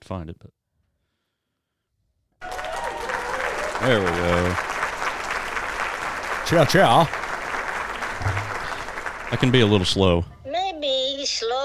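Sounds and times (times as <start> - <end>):
speech: 0.1 - 0.6, 3.8 - 4.8, 6.5 - 7.2, 9.3 - 10.3, 11.2 - 11.6
applause sound effect of a live audience: 2.4 - 10.2.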